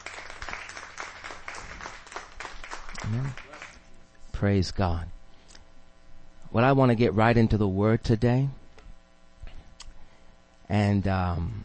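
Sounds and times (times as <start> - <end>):
crowd clapping: 0.0 - 3.9
speech: 3.1 - 3.4, 4.4 - 5.2, 6.5 - 8.6, 10.7 - 11.6.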